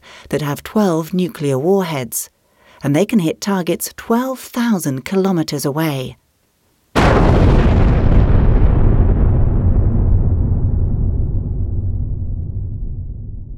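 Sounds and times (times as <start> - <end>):
speech: 0.3 - 6.2
depth charge exploding underwater: 7.0 - 13.5.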